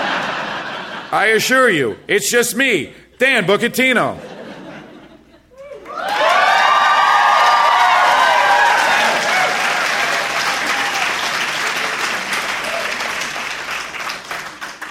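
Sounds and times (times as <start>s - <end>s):
laughter: 0.0s - 1.2s, 4.2s - 6.0s
speech: 1.1s - 4.3s
crowd cheering and whooping: 5.6s - 13.3s
crowd clapping: 5.6s - 14.8s.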